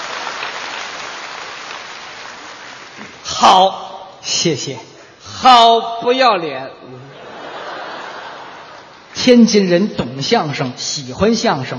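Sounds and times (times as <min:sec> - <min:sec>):
audience applause at a crosstalk comedy show: 0:00.0 - 0:03.2
speech: 0:03.0 - 0:07.0, 0:09.2 - 0:11.7
laughter: 0:07.0 - 0:09.1.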